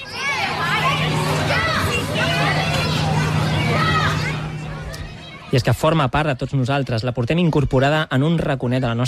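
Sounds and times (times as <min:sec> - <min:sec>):
children shouting in a school playground: 0:00.0 - 0:05.8
speech: 0:05.5 - 0:09.0.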